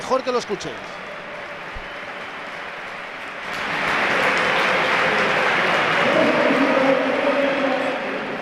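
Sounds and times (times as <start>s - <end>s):
stadium crowd applauding departing player: 0.0s - 8.4s
speech: 0.1s - 1.0s.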